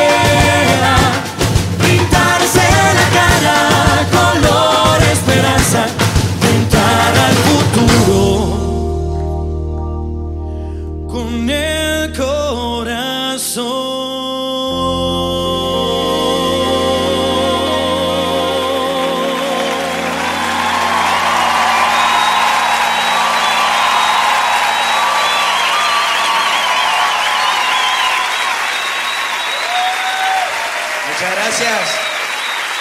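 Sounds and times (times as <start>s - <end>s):
music: 0.0s - 29.5s
audience applause: 19.4s - 32.7s
scattered audience cheers: 19.5s - 32.7s
audience whistle: 20.2s - 30.2s, 31.8s - 32.7s.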